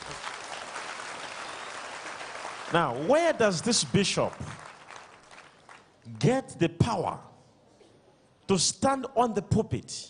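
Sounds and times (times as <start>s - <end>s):
audience clapping hands: 0.0s - 6.1s
speech: 2.7s - 4.6s, 6.2s - 7.3s, 8.5s - 10.0s.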